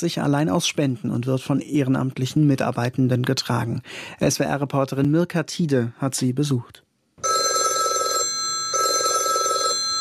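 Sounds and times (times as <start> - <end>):
speech: 0.0 - 6.8
telephone ringtone alarm from a baby hatch: 7.2 - 10.0.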